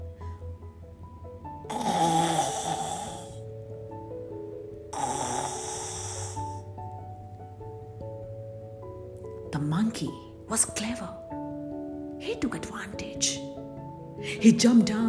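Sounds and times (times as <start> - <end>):
snoring of a sleeping person: 1.7 - 3.4, 4.9 - 6.7
speech: 10.0 - 11.3, 12.4 - 13.4, 14.4 - 15.0.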